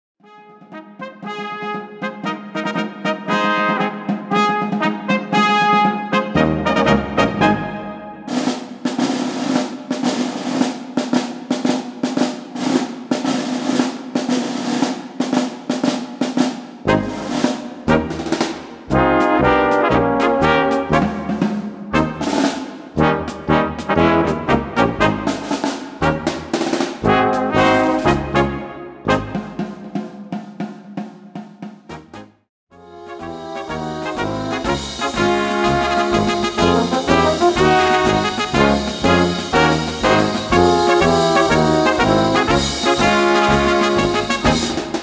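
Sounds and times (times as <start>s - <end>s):
parade drums: 1.2s - 45.0s.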